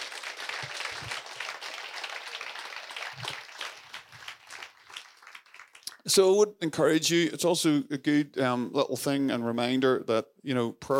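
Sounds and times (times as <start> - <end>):
crowd applause: 0.0 - 6.0
speech: 6.1 - 10.9.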